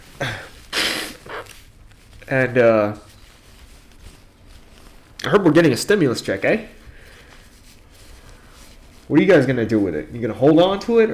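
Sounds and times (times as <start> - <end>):
person blowing nose: 0.0 - 1.8
speech: 2.3 - 3.1, 5.3 - 6.8, 9.1 - 11.1.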